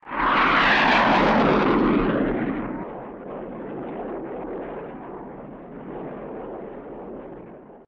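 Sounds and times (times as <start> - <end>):
airplane: 0.0 - 7.8.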